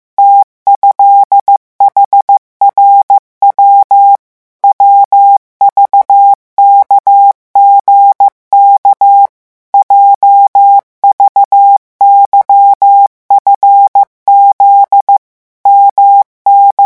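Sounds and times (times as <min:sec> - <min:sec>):
morse code letters at speed 14: 0:00.2 - 0:16.8.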